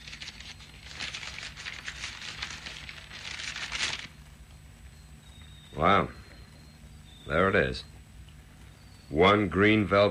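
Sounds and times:
paper unwrapping: 0:00.0 - 0:04.2
speech: 0:05.8 - 0:06.2, 0:07.3 - 0:07.9, 0:09.1 - 0:10.0.

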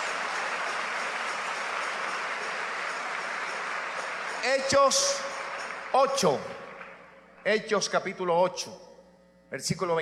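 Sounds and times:
louder audience applause: 0:00.0 - 0:07.1
speech: 0:04.4 - 0:05.3, 0:05.9 - 0:06.5, 0:07.4 - 0:08.9, 0:09.5 - 0:09.9.

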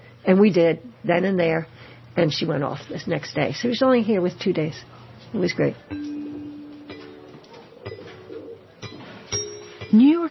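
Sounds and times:
speech: 0:00.3 - 0:06.1, 0:09.9 - 0:10.3
pigeon cooing: 0:06.6 - 0:09.3.

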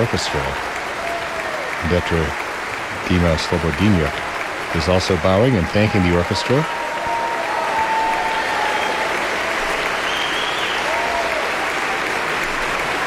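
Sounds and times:
speech: 0:00.0 - 0:00.8, 0:01.8 - 0:02.4, 0:03.0 - 0:06.8
audience applauding after a concerto: 0:00.0 - 0:13.0.

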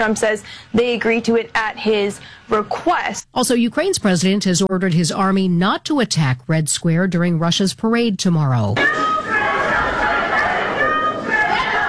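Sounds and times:
speech: 0:00.0 - 0:09.3
crowd murmuring at a state house: 0:08.8 - 0:11.8.

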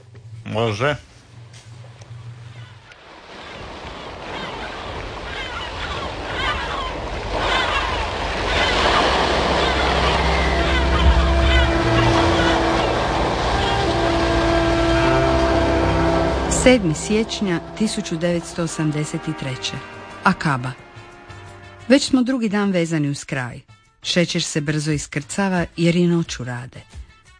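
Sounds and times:
wind at sea: 0:00.0 - 0:21.6
ship engine rumble at sea: 0:00.0 - 0:23.1
speech: 0:00.5 - 0:01.1, 0:16.7 - 0:20.8, 0:21.9 - 0:27.0
rushing waves at sea: 0:02.7 - 0:21.9.

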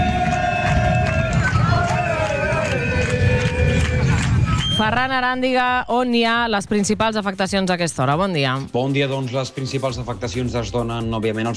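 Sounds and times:
teachers' strike protest on ring road: 0:00.0 - 0:05.9
speech: 0:04.8 - 0:11.5.

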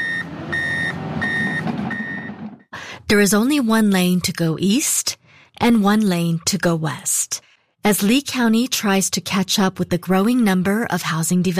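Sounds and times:
traffic noise: 0:00.0 - 0:02.6
truck reversing beeps at roadwork on Corkscrew Road in Estero: 0:00.0 - 0:02.7
constant rumbling engine: 0:00.0 - 0:02.9
speech: 0:03.1 - 0:07.2, 0:07.8 - 0:11.5.

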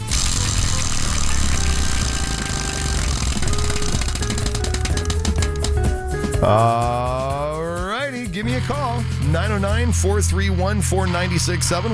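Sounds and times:
prize wheel spinning and clicking: 0:00.0 - 0:05.9
continuous tonal background: 0:01.6 - 0:08.6
speech: 0:06.4 - 0:07.0, 0:08.5 - 0:11.9.

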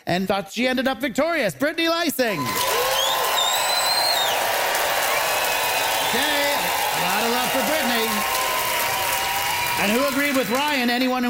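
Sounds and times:
speech: 0:00.0 - 0:03.0, 0:06.1 - 0:06.4, 0:09.8 - 0:11.2
audience applause: 0:02.4 - 0:11.2
high sliding whistles: 0:02.9 - 0:04.4.

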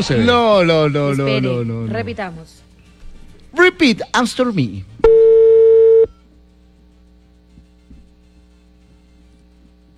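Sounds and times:
speech: 0:00.0 - 0:02.7, 0:03.5 - 0:05.2
telephone tone after a call is hung up: 0:05.0 - 0:06.2.

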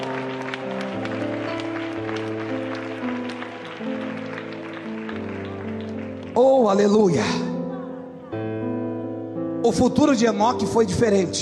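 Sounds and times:
audience applauding: 0:00.0 - 0:08.0
speech: 0:06.4 - 0:07.5, 0:09.7 - 0:11.4.

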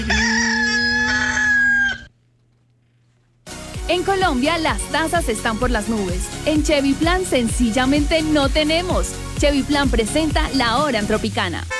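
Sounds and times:
rooster crowing: 0:00.0 - 0:02.1
speech: 0:03.9 - 0:11.7.

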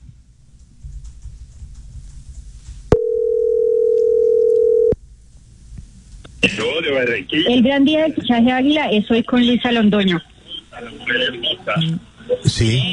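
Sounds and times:
low rumbling noise: 0:00.0 - 0:12.9
telephone dial tone while dialing a number: 0:02.9 - 0:05.0
speech: 0:06.4 - 0:12.9.

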